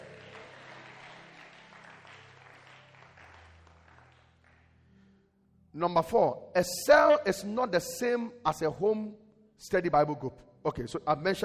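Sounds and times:
audience clapping hands: 0.0s - 5.0s
speech: 5.8s - 11.4s.

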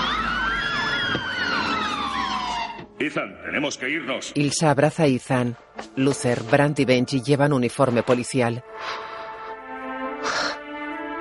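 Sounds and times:
police car sirens: 0.0s - 3.0s
speech: 3.0s - 9.1s.

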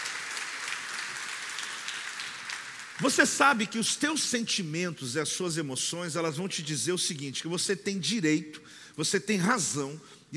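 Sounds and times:
audience applause: 0.0s - 3.4s
speech: 3.0s - 10.3s.

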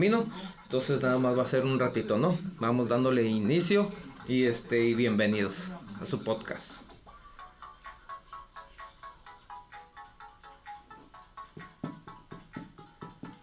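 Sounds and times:
speech: 0.0s - 6.8s
short bright radio program jingle: 0.0s - 7.4s
deeper thumping beats: 0.0s - 13.4s.

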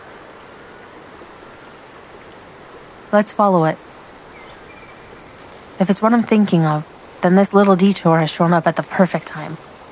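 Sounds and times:
distant flowing water: 0.0s - 9.9s
speech: 3.1s - 3.9s, 5.8s - 9.7s.

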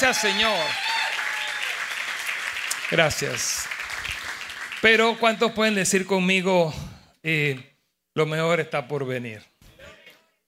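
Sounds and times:
speech: 0.0s - 0.9s, 2.9s - 4.2s, 4.8s - 9.5s
audience applause: 0.0s - 6.0s.

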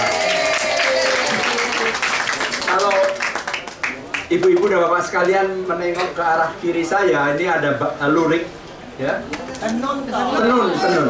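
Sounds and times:
faint voice or cheering: 0.0s - 2.0s
crowd clapping: 0.0s - 5.3s
speech: 4.3s - 11.0s.

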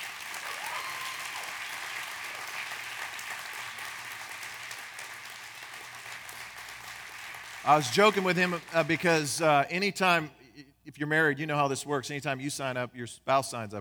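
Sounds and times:
audience applause: 0.0s - 9.5s
speech: 7.6s - 13.7s.

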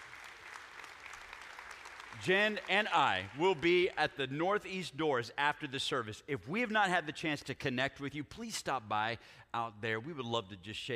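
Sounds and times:
audience applause: 0.0s - 4.0s
speech: 2.2s - 10.9s.

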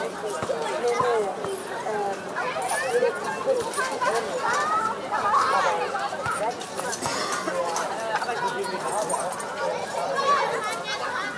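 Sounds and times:
children's playground hum in Berlin on a summer evening: 0.0s - 11.3s.

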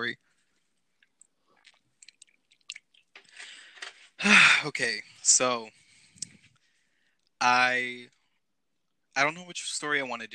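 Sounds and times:
speech: 0.0s - 0.2s, 4.2s - 5.8s, 7.4s - 8.2s, 9.2s - 10.3s
person drinking water: 1.0s - 4.0s.

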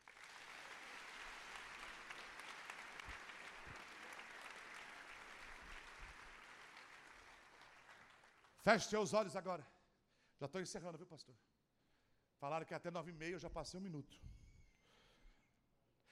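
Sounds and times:
audience applause: 0.0s - 8.6s
speech: 8.6s - 9.8s, 10.4s - 11.5s, 12.4s - 14.4s.

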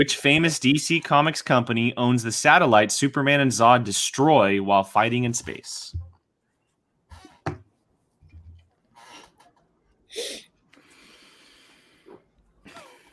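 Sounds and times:
speech: 0.0s - 6.0s
chair squeaking: 8.3s - 9.6s.

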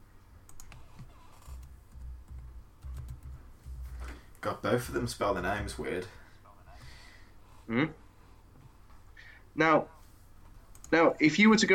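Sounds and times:
typing on a computer keyboard into a browser tab: 0.5s - 3.4s
low rumbling background: 0.8s - 8.5s
speech: 4.4s - 6.2s, 7.7s - 8.0s, 9.6s - 10.0s, 10.9s - 11.7s.

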